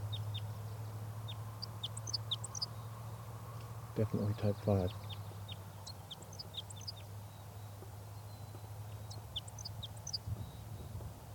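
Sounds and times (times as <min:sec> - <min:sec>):
bird singing song phrases: 0:00.0 - 0:11.3
speech: 0:04.0 - 0:05.0.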